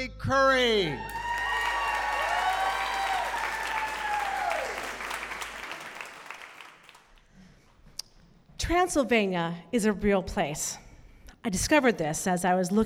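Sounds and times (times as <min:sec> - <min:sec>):
speech: 0:00.0 - 0:01.2, 0:08.6 - 0:10.8, 0:11.4 - 0:12.8
audience applause for storyteller: 0:01.0 - 0:07.2.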